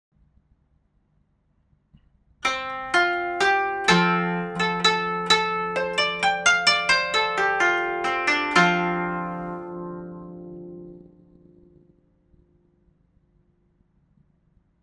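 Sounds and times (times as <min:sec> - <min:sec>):
koto: 0:02.4 - 0:12.1.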